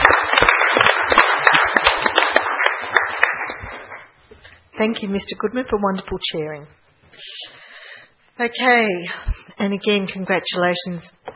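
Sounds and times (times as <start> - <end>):
audience applause: 0.0 - 4.1
speech: 4.8 - 7.5, 8.4 - 11.2.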